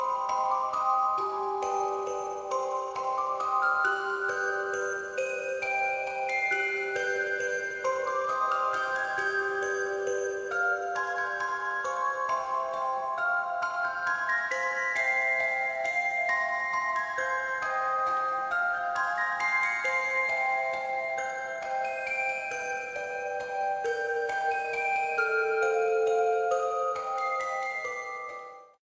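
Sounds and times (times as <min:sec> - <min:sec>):
music box: 0:00.0 - 0:28.8.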